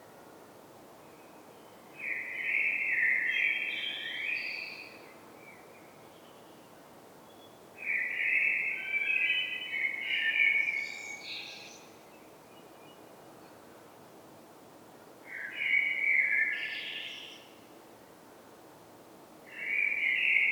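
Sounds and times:
Common blackbird song: 0:01.1 - 0:06.7, 0:07.3 - 0:13.1, 0:15.3 - 0:17.6, 0:19.5 - 0:20.4.

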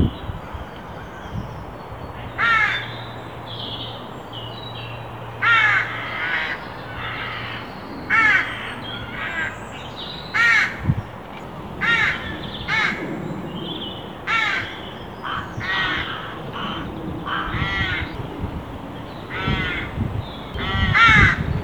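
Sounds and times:
Carrion crow Corvus corone cawing: 0:02.4 - 0:02.9, 0:05.4 - 0:10.9, 0:11.8 - 0:13.1, 0:14.1 - 0:18.3, 0:19.3 - 0:21.5.

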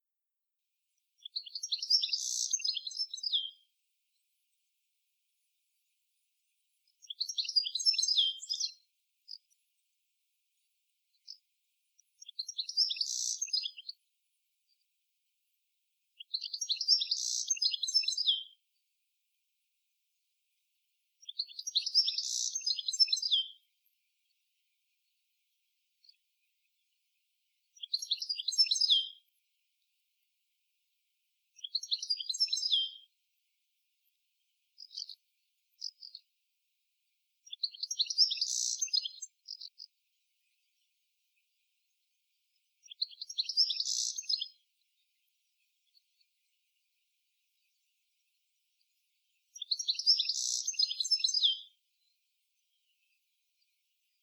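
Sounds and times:
Carduelis carduelis: 0:01.2 - 0:04.2, 0:06.8 - 0:09.6, 0:10.6 - 0:14.0, 0:16.2 - 0:18.6, 0:21.2 - 0:23.7, 0:27.7 - 0:29.4, 0:31.6 - 0:33.1, 0:34.0 - 0:36.3, 0:37.4 - 0:42.0, 0:42.6 - 0:54.2.

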